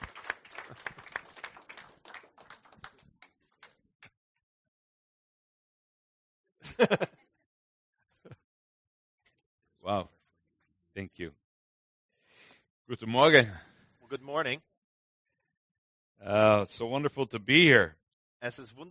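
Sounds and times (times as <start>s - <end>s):
audience applause: 0.0s - 3.3s
laughter: 6.6s - 7.2s
speech: 6.7s - 7.1s, 12.9s - 14.7s, 16.2s - 18.9s.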